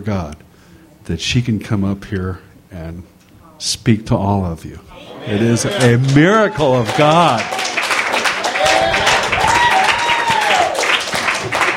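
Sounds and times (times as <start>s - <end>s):
speech: 0.0s - 0.5s, 1.1s - 7.7s
applause: 5.7s - 11.7s.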